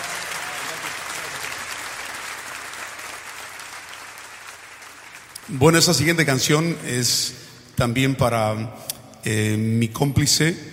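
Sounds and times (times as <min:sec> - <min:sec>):
audience applause: 0:00.0 - 0:06.0
speech: 0:05.5 - 0:10.7.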